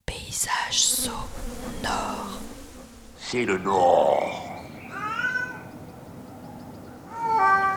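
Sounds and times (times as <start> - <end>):
faint hiss: 0.0 - 7.2
speech: 0.4 - 2.4, 3.3 - 4.5
neighbour's cat in heat meowing in a street in Douai: 4.9 - 5.7, 7.1 - 7.7.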